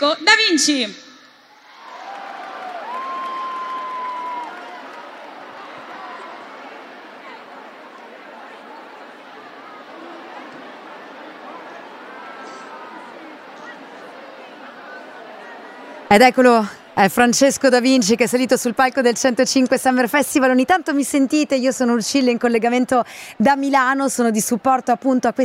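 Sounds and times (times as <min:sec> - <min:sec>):
speech: 0:00.0 - 0:01.1, 0:16.1 - 0:25.4
audience applause and cheering: 0:01.5 - 0:16.1.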